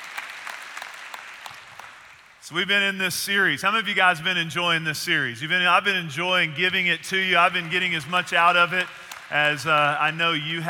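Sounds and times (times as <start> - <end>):
church congregation applauding: 0.0 - 2.4, 7.4 - 10.6
speech: 2.5 - 10.6.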